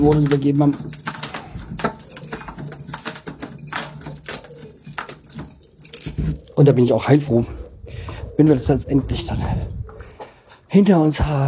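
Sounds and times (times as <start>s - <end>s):
speech: 0.0s - 1.1s, 6.6s - 7.6s, 8.4s - 9.8s, 10.7s - 11.4s
keys jingling on a key ring: 0.0s - 11.4s.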